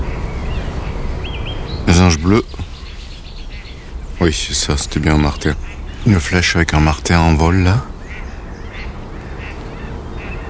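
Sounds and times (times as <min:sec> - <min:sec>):
mallard ducks quacking: 0:00.0 - 0:10.4
steady low rumbling background: 0:00.0 - 0:10.4
speech: 0:02.2 - 0:02.6, 0:04.2 - 0:07.9.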